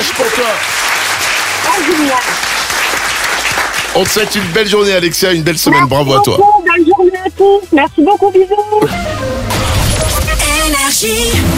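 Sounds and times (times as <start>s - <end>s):
studio audience applause on a French TV game show: 0.0s - 5.7s
speech: 0.3s - 0.8s, 1.8s - 2.5s, 4.0s - 9.7s, 10.7s - 11.5s
presenter speaking: 4.0s - 8.9s.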